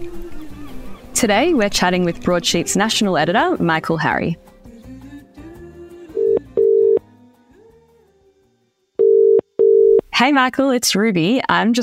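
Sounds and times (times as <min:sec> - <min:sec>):
soft music: 0:00.0 - 0:10.0
speech: 0:01.2 - 0:04.5, 0:10.2 - 0:11.8
telephone ringing tone of outgoing call: 0:06.2 - 0:07.0, 0:09.0 - 0:10.0.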